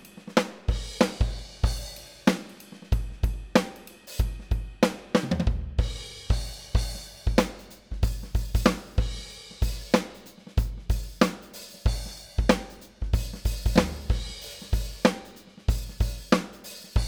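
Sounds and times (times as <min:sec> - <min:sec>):
soul drum groove at 94 bpm: 0:00.0 - 0:17.0.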